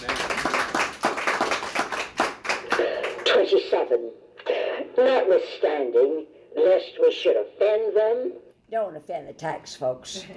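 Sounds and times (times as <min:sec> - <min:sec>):
group of people clapping: 0:00.0 - 0:03.6
speech: 0:03.5 - 0:04.2, 0:05.0 - 0:10.3.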